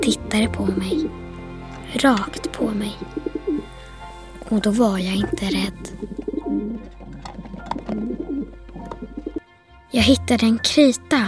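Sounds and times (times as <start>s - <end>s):
speech: 0.0s - 1.2s, 1.9s - 3.3s, 4.5s - 6.0s, 9.9s - 11.2s
white dove cooing: 5.5s - 9.4s.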